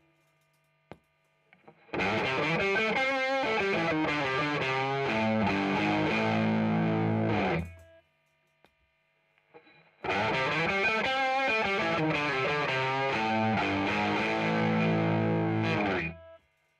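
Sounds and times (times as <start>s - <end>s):
tube driver overdrive distortion: 1.9s - 7.8s, 10.0s - 16.2s.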